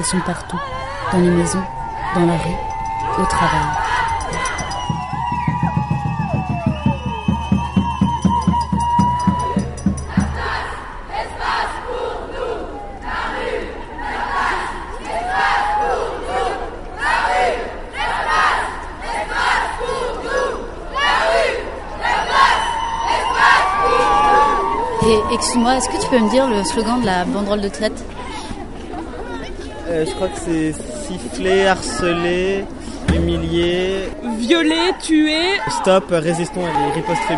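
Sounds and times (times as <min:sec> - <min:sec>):
speech: 0:00.0 - 0:03.9, 0:25.3 - 0:28.1, 0:29.9 - 0:37.3
crowd shouting: 0:00.0 - 0:27.5, 0:31.2 - 0:37.3
large crowd chanting at a night protest march: 0:00.0 - 0:27.6
rhythmic pulsing beat: 0:01.2 - 0:10.8, 0:25.0 - 0:26.4, 0:33.0 - 0:34.3.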